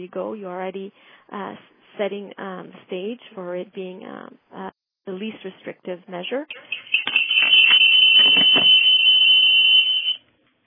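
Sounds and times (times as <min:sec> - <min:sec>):
speech: 0:00.0 - 0:07.0, 0:08.2 - 0:08.8
phone alert or ringing: 0:06.5 - 0:10.2.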